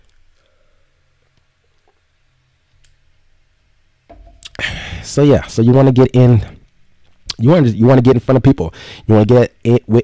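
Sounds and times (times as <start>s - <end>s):
person sipping water: 4.3s - 4.6s
speech: 5.0s - 6.6s, 7.4s - 10.0s.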